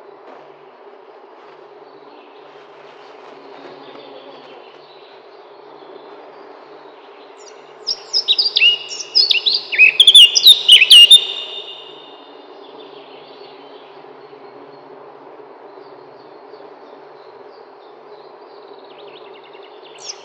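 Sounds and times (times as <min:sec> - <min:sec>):
Eurasian blackcap song: 0:03.6 - 0:13.9, 0:18.8 - 0:20.2.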